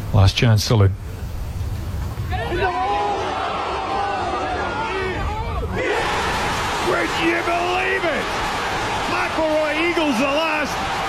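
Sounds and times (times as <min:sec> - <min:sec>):
speech: 0:00.1 - 0:01.1
crowd cheering at a golf event: 0:02.3 - 0:11.0.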